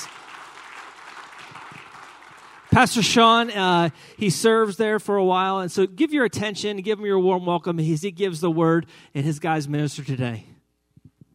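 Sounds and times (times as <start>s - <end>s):
church audience applauding: 0.0s - 3.6s
speech: 2.8s - 10.5s.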